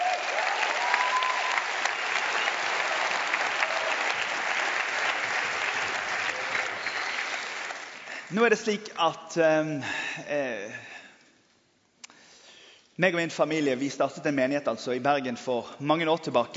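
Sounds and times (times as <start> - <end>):
audience clapping: 0.0 - 8.4
speech: 8.3 - 10.9, 13.0 - 16.5.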